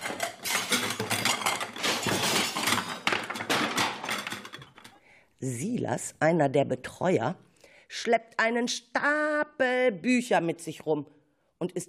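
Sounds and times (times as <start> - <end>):
dish cart crashing: 0.0 - 4.5
speech: 5.4 - 11.8.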